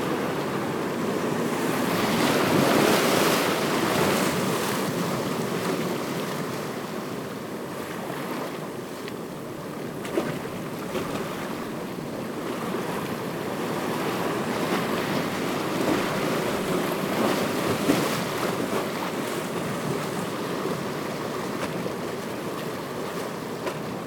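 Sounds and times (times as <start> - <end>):
ocean waves: 0.0 - 24.0.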